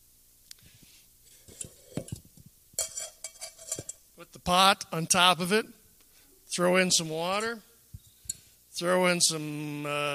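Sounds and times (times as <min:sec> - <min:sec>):
propane canister screwed onto a camp stove: 0:01.3 - 0:04.0
speech: 0:04.4 - 0:05.8, 0:06.6 - 0:07.7, 0:08.8 - 0:10.1.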